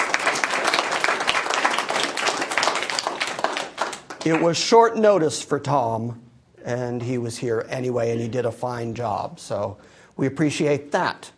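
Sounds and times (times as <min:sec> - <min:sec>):
audience round of applause: 0:00.0 - 0:04.6
speech: 0:04.2 - 0:11.3.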